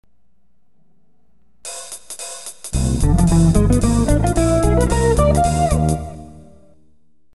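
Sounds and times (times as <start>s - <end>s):
jazz music: 1.7s - 6.8s.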